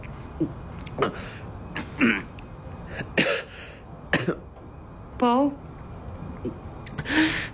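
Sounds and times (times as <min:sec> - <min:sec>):
speech: 0:00.4 - 0:01.4, 0:02.0 - 0:02.3, 0:05.2 - 0:05.6
person choking and coughing on candied fruit: 0:01.8 - 0:02.3, 0:03.1 - 0:03.5, 0:04.1 - 0:04.4.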